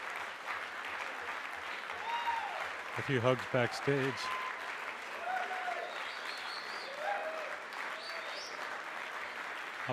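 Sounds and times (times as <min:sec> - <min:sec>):
concert crowd applauding in a club: 0:00.0 - 0:09.9
scattered cheers and whistles: 0:02.0 - 0:02.7, 0:04.0 - 0:08.6
speech: 0:03.0 - 0:04.4.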